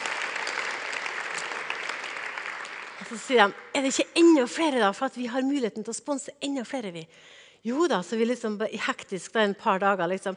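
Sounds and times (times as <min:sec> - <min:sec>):
audience clapping: 0:00.0 - 0:03.8
speech: 0:03.0 - 0:10.3.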